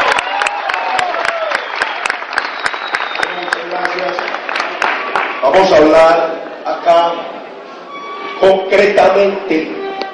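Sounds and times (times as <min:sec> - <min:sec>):
audience applause: 0:00.0 - 0:05.9
speech: 0:05.4 - 0:07.3, 0:08.4 - 0:09.8.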